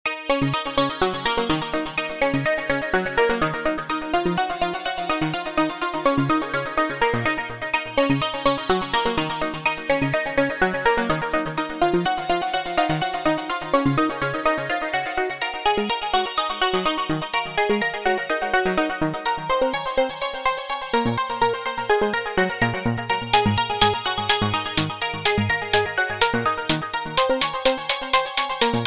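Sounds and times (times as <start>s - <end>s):
melodic trance music: 0.1s - 28.8s.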